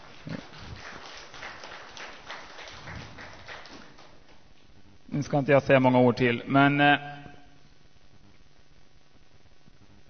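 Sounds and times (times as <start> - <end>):
audience applause: 0.0 - 4.4
speech: 5.2 - 7.1.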